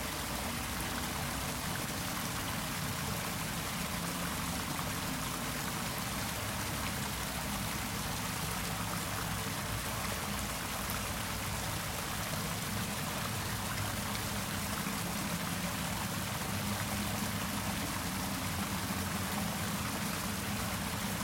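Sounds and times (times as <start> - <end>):
underground waterfall: 0.0 - 21.2.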